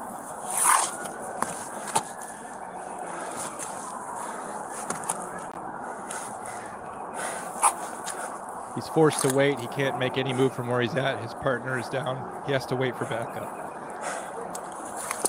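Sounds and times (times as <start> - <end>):
officer's slow controlled tactical breathing: 0.0 - 8.9, 12.8 - 15.2
speech: 8.8 - 13.6.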